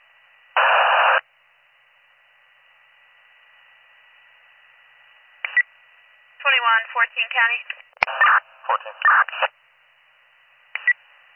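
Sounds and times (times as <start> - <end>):
radio static from transmitter keying: 0.6 - 1.2, 8.0 - 9.5
speech: 6.5 - 9.6.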